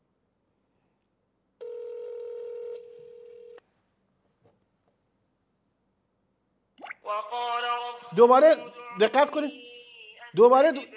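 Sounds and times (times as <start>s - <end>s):
telephone ringing tone on an outgoing call: 1.6s - 3.6s
speech: 8.1s - 9.6s, 10.3s - 10.9s.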